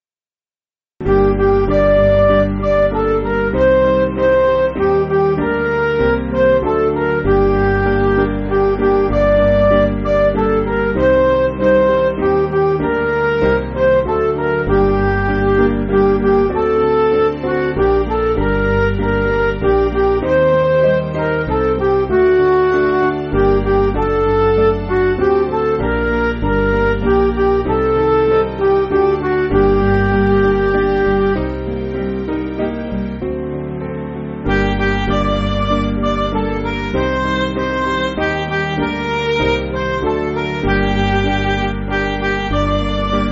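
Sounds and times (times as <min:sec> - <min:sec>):
MIDI music: 0:01.0 - 0:43.3.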